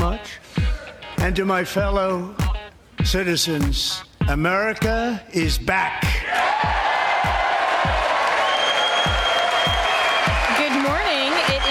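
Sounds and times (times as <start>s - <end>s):
speech: 0.2s - 2.4s, 3.0s - 6.8s
applause in Congress: 6.5s - 11.7s.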